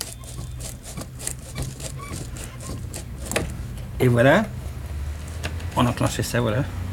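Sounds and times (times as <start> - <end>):
crank-wound phonograph motor running: 0.0 - 3.8
speech: 4.0 - 4.6, 5.8 - 6.8.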